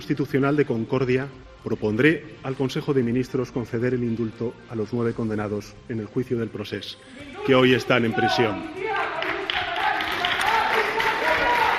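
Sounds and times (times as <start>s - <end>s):
speech: 0.0s - 9.3s
crowd applause: 9.2s - 11.7s
crowd booing: 9.5s - 11.7s.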